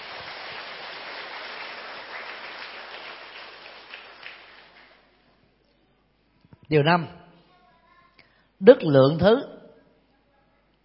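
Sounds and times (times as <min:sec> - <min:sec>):
loud round of applause: 0:00.0 - 0:05.1
speech: 0:06.7 - 0:07.2, 0:08.6 - 0:09.5.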